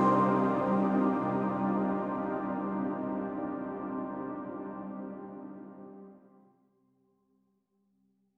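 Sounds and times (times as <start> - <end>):
flute: 0.0 - 6.0.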